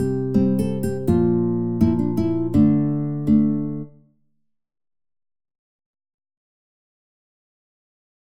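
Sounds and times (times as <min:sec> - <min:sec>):
instrumental music: 0:00.0 - 0:04.2.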